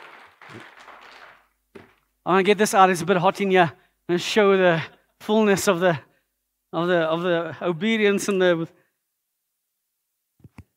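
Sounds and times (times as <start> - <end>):
audience applause: 0.0 - 2.0
speech: 0.5 - 0.8, 2.3 - 6.1, 6.7 - 8.8.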